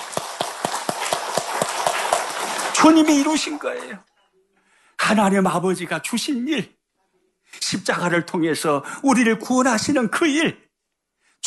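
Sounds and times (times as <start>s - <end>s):
audience applause: 0.0s - 4.0s
speech: 2.8s - 4.1s, 5.1s - 6.8s, 7.5s - 10.6s.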